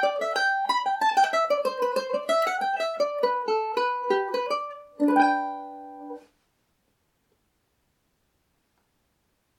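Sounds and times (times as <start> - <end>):
Irish mandolin in G major: 0.0 - 6.3.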